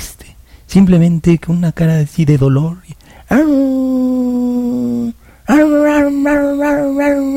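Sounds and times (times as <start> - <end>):
speech: 0.7 - 3.8
dog howling in a field on a ranch: 4.7 - 7.3.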